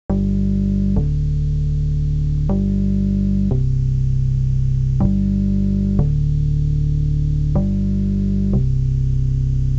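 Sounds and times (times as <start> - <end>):
bass: 0.0 - 9.7.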